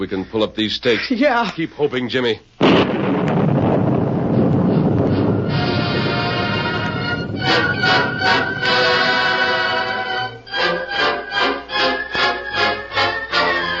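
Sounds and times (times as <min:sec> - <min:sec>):
speech: 0:00.0 - 0:03.2
storm wind and rain: 0:02.6 - 0:10.4
dramatic orchestral music: 0:05.0 - 0:13.7.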